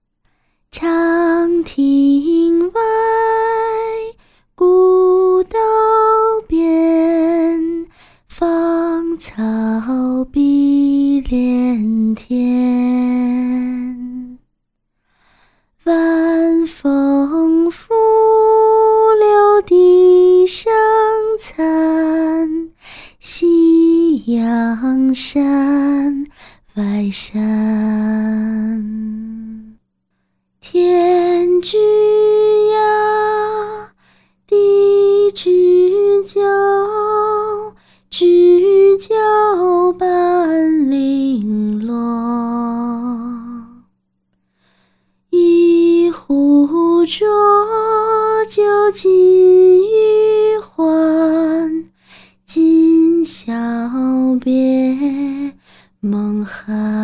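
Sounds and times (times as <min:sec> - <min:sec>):
a cappella farewell song: 0:00.7 - 0:14.4, 0:15.8 - 0:29.8, 0:30.6 - 0:43.9, 0:45.3 - 0:57.0.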